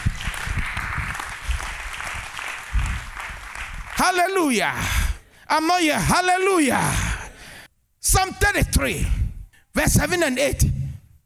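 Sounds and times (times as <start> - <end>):
audience clapping: 0.0 - 5.2
speech: 4.0 - 7.1, 8.0 - 9.2, 9.8 - 10.7.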